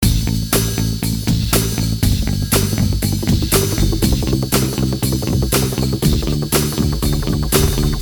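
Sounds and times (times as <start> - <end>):
depressing rock music: 0.0 - 7.9.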